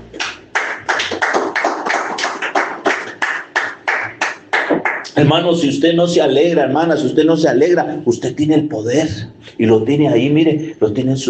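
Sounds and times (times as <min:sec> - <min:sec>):
audience applause: 0:00.2 - 0:05.1
speech: 0:05.2 - 0:11.2.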